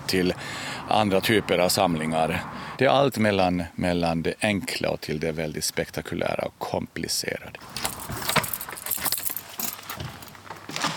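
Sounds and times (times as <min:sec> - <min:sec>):
speech: 0:00.1 - 0:07.9
keys jangling: 0:07.7 - 0:10.4.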